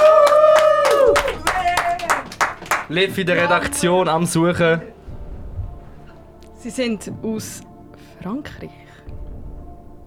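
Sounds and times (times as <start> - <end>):
audience applause: 0.0 - 3.6
speech: 2.9 - 5.0, 6.6 - 9.2.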